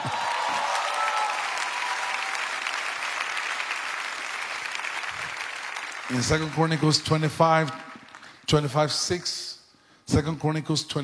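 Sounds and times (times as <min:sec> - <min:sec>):
audience clapping: 0:00.0 - 0:08.7
speech: 0:06.1 - 0:07.8, 0:08.5 - 0:09.5, 0:10.1 - 0:11.0.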